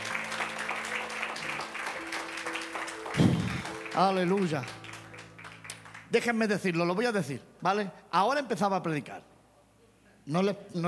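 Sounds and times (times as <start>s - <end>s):
audience applauding: 0.0s - 6.7s
speech: 4.0s - 4.8s, 6.1s - 9.3s, 10.3s - 10.8s.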